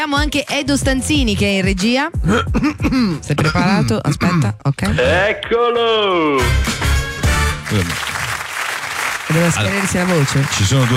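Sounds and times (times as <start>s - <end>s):
speech: 0.0s - 6.8s, 7.7s - 8.2s, 9.3s - 10.9s
audience clapping: 6.7s - 10.9s.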